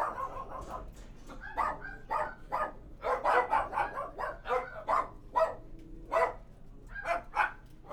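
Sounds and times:
several dogs barking: 0.0s - 0.8s, 1.6s - 6.4s.

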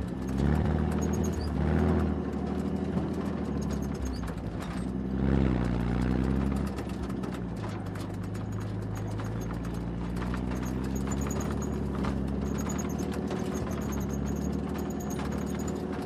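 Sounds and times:
distant tank engine: 0.0s - 16.0s.

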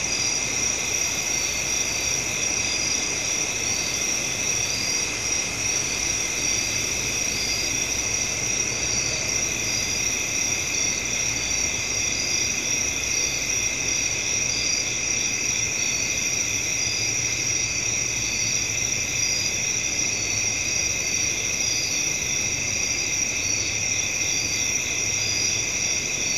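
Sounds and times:
crickets trilling at night: 0.0s - 26.3s.

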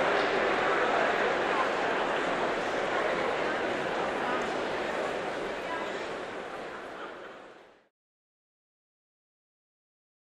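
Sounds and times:
crowd cheering in a soccer field: 0.0s - 5.5s.

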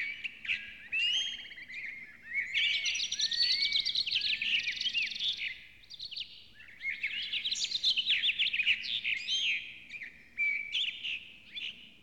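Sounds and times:
bird song of high chirps, trills and whistled slurs: 0.0s - 12.0s.

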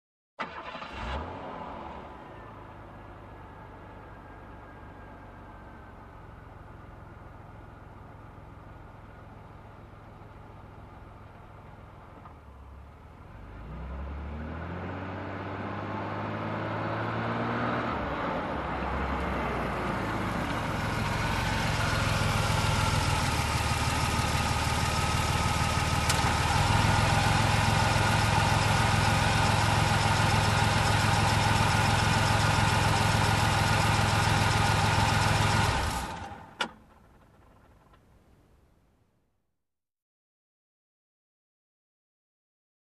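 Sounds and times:
car approaching and parking: 0.4s - 39.0s.

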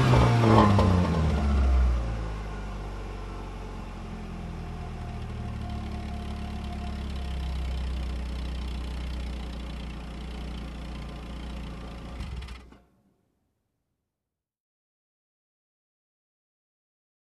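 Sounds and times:
car engine revving: 0.0s - 12.7s.

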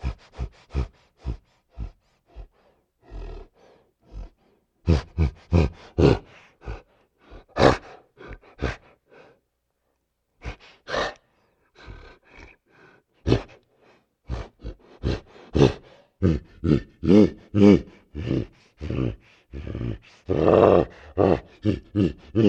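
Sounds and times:
dog growling: 3.0s - 9.0s, 10.4s - 11.2s, 14.2s - 22.4s.

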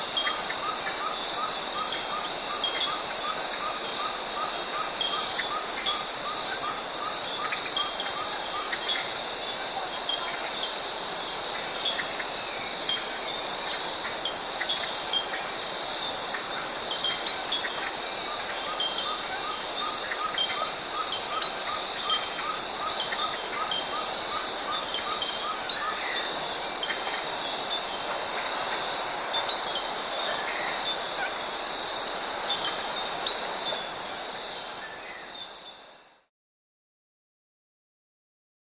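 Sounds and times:
cicada in a tropical forest: 0.0s - 36.3s.

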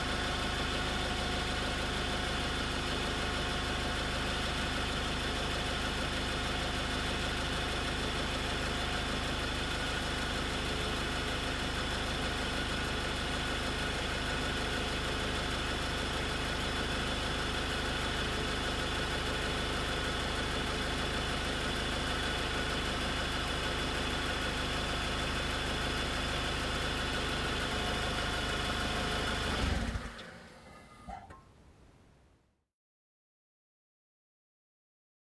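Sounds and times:
car engine ignition and running idle: 0.0s - 32.2s.

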